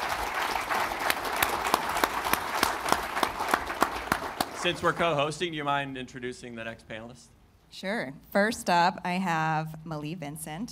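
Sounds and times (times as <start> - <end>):
live audience round of applause: 0.0 - 5.3
speech: 4.6 - 10.7.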